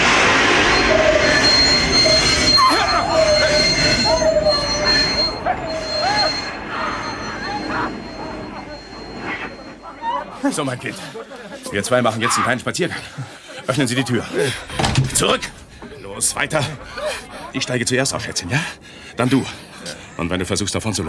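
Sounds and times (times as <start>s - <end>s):
train emergency braking: 0.0s - 10.5s
laughter: 2.6s - 17.8s
speech: 10.6s - 15.6s, 16.2s - 21.0s.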